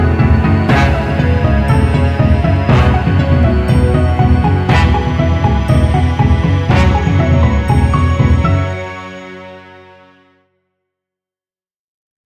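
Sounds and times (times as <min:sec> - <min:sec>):
story ending music: 0:00.0 - 0:08.7.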